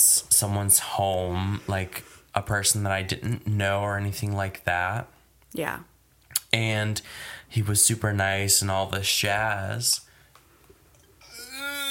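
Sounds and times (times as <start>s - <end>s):
speech: 0.0s - 5.9s, 6.5s - 10.1s
belch: 11.2s - 11.8s.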